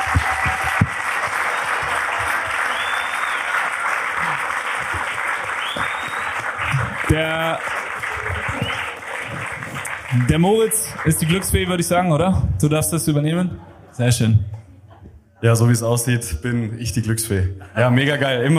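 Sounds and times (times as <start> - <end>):
audience applause: 0.0 - 12.1
speech: 7.1 - 7.7, 10.1 - 14.5, 15.4 - 18.5.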